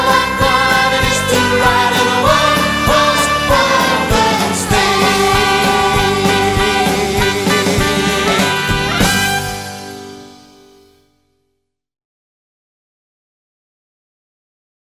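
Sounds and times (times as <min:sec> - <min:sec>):
Christmas song: 0:00.0 - 0:11.2.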